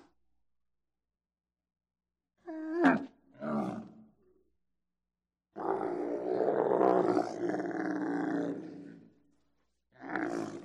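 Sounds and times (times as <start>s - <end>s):
camel grumbling vocalisations: 2.7s - 4.0s, 5.6s - 9.1s, 10.0s - 10.6s.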